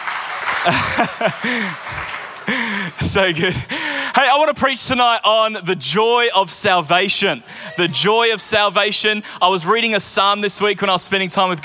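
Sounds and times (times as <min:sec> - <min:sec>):
audience clapping: 0:00.0 - 0:04.0
laughter: 0:00.4 - 0:03.8, 0:07.2 - 0:09.1
speech: 0:00.6 - 0:11.6.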